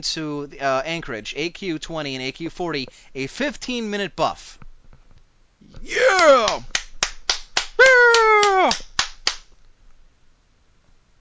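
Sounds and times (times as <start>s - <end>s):
speech: 0.0s - 4.6s, 5.6s - 6.8s, 7.8s - 8.8s
single sharp hand clap: 6.0s - 9.5s.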